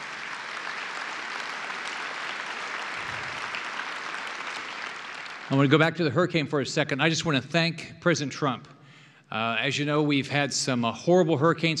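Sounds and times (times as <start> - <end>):
audience applause: 0.0 - 5.9
speech: 5.5 - 11.7.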